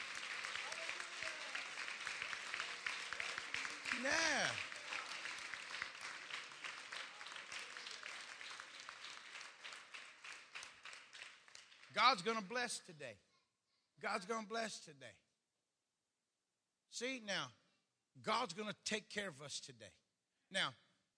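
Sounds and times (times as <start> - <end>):
audience clapping hands: 0.0 - 12.6
speech: 4.0 - 4.7, 12.0 - 13.3, 14.0 - 15.2, 16.9 - 17.6, 18.2 - 20.8.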